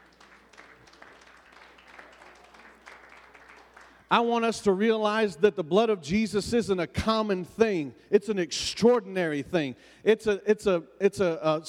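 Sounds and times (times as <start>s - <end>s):
audience clapping: 0.0s - 4.1s
speech: 4.1s - 11.6s.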